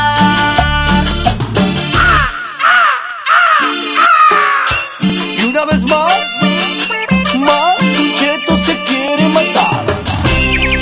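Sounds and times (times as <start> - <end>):
music: 0.0 - 10.8
parrot squawking loudly: 2.0 - 5.0.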